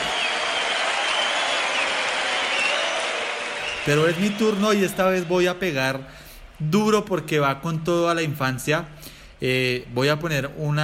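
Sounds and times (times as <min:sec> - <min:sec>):
audience applause: 0:00.0 - 0:05.7
speech: 0:03.9 - 0:10.8.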